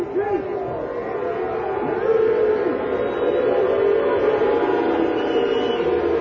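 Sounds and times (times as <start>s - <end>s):
stadium crowd of Kansas City Chiefs fans booing: 0.0s - 6.2s.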